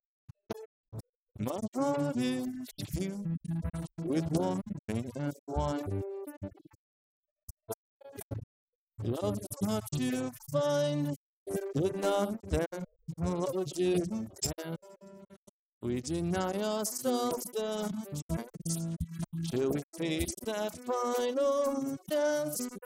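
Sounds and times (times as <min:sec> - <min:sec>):
person singing: 0:01.4 - 0:06.1, 0:09.0 - 0:14.8, 0:15.8 - 0:22.8.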